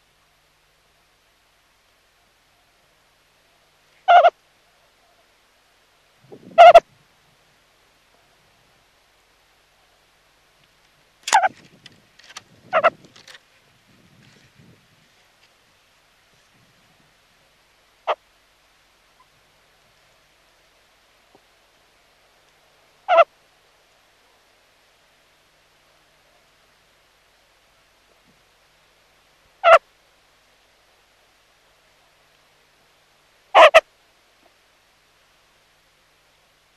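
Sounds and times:
meerkat sentry calls: 4.0 - 4.4, 6.6 - 6.8, 11.3 - 11.5, 12.7 - 13.0, 23.0 - 23.3, 29.6 - 29.8, 33.5 - 33.8.

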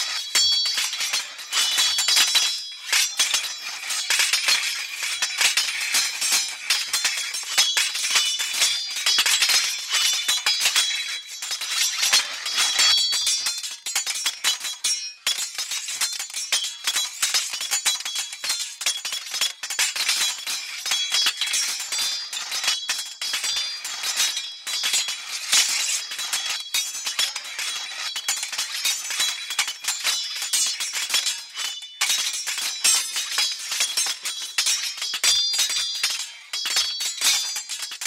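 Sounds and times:
swords clashing during battle: 0.0 - 38.0.

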